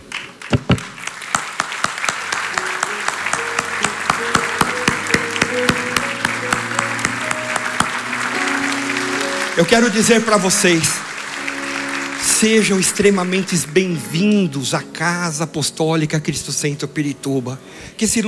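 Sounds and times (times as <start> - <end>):
audience applause: 0.0 - 14.2
low musical drone: 2.3 - 15.6
speech: 9.6 - 11.1, 12.4 - 18.2.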